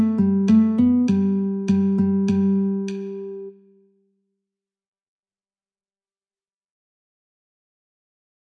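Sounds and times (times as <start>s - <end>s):
guitar metronome clicking: 0.0s - 3.5s.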